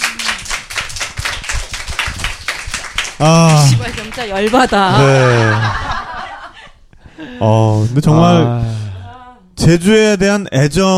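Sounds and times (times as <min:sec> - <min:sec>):
audience applause: 0:00.0 - 0:05.7
speech: 0:03.2 - 0:05.8, 0:07.4 - 0:08.8, 0:09.6 - 0:10.9
laughter: 0:04.6 - 0:07.3.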